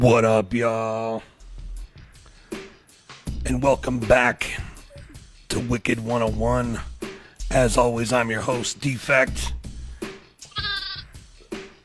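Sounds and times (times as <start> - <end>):
speech: 0.0 - 1.3, 3.4 - 4.7, 5.5 - 6.9, 7.5 - 9.6
lamb bleating sound effect: 10.4 - 11.2.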